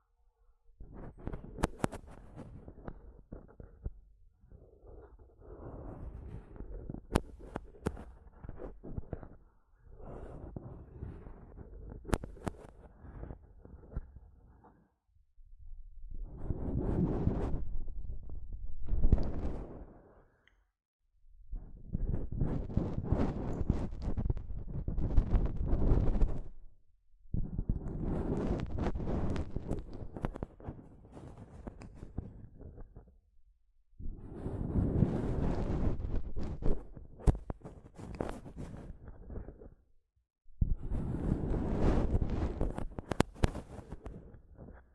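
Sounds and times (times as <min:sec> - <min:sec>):
microphone tapping and scratching: 0:00.8 - 0:04.0, 0:05.8 - 0:09.4, 0:10.0 - 0:14.8, 0:16.2 - 0:20.0, 0:21.6 - 0:26.6, 0:27.3 - 0:33.1, 0:34.0 - 0:39.8, 0:40.6 - 0:44.9.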